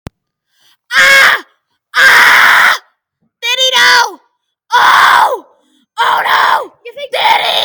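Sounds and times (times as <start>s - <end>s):
person screaming: 0.9s - 2.9s, 4.7s - 5.4s, 6.0s - 7.6s.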